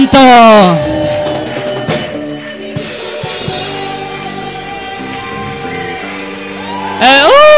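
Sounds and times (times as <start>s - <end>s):
sustained musical tones: 0.0s - 7.3s
audience whooping: 0.5s - 7.5s
audience shouting cries of victory and joy praising God: 3.4s - 7.5s.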